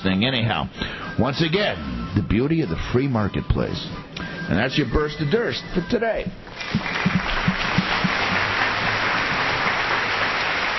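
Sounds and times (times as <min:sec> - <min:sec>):
speech: 0:00.0 - 0:07.3
crowd applause: 0:06.5 - 0:10.7.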